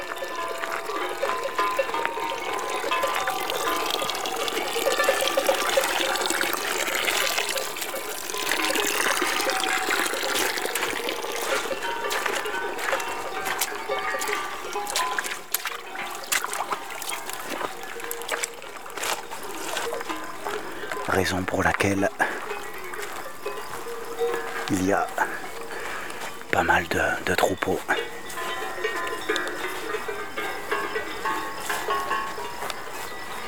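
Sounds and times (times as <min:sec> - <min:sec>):
water splashing and trickling at a watering hole: 0:00.0 - 0:33.4
speech: 0:21.3 - 0:22.2, 0:26.9 - 0:28.0.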